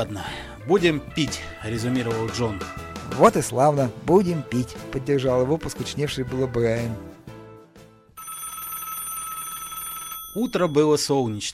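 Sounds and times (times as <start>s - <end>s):
speech: 0.0s - 7.1s, 10.4s - 11.5s
telephone ringing: 8.2s - 11.5s.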